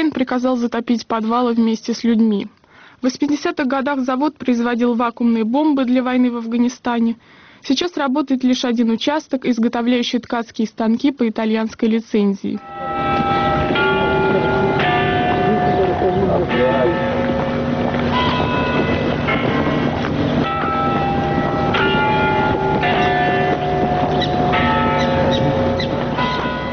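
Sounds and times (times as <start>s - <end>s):
speech: 0.0s - 13.0s
tower clock bells striking the hour: 12.6s - 26.7s.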